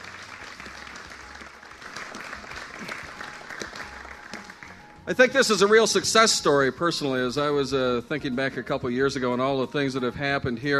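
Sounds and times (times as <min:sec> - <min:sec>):
crowd applauding: 0:00.0 - 0:05.7
speech: 0:05.1 - 0:10.7.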